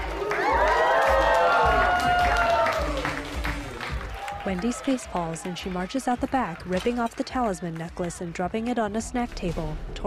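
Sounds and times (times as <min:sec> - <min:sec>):
person clapping: 0:00.0 - 0:08.2
speech: 0:04.5 - 0:10.0.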